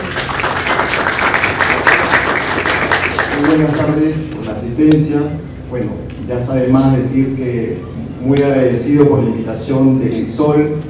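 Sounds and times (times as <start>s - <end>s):
audience applauding: 0.0s - 4.1s
speech: 3.5s - 10.8s.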